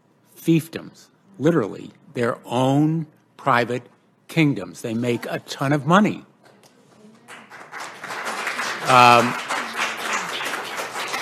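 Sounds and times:
speech: 0:00.4 - 0:06.3, 0:08.9 - 0:09.5
crowd audience applause: 0:07.3 - 0:11.1.

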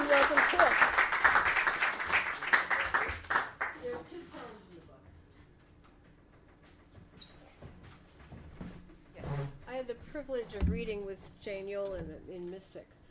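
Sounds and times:
audience at a poetry reading clapping: 0:00.0 - 0:04.1
speech: 0:10.2 - 0:13.0.

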